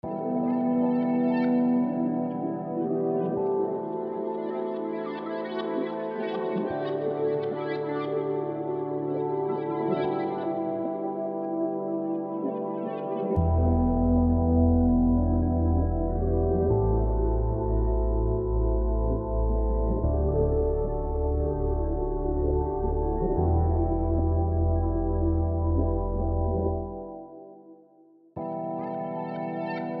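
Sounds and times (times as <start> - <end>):
spacey music in E minor: 0.0 - 27.6, 28.4 - 29.9.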